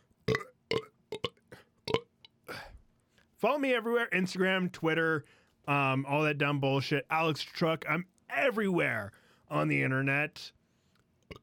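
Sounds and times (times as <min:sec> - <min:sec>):
person burping: 0:00.3 - 0:02.1
speech: 0:03.4 - 0:10.6.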